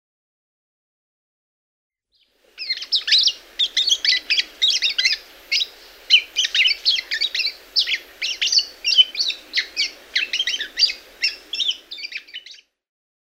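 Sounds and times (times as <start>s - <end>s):
Eurasian golden oriole singing: 2.2s - 12.7s.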